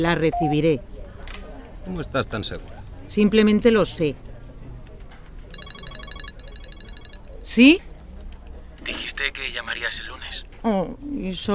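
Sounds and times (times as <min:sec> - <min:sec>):
speech: 0:00.0 - 0:00.9, 0:01.8 - 0:04.2, 0:07.5 - 0:07.9, 0:08.8 - 0:11.5
telephone ringing with electronic trilling: 0:05.5 - 0:07.6.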